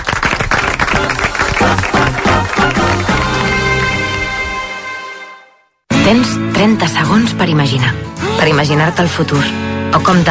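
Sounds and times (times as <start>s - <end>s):
audience applause: 0.0s - 4.7s
speech: 6.1s - 10.2s.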